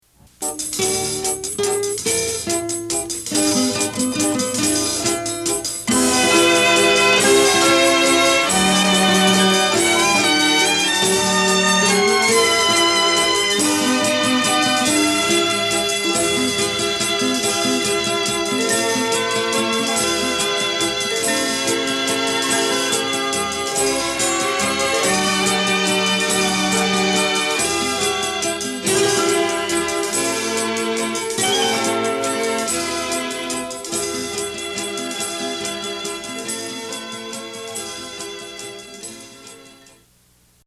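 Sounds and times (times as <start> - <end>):
instrumental music: 0.0 - 40.6.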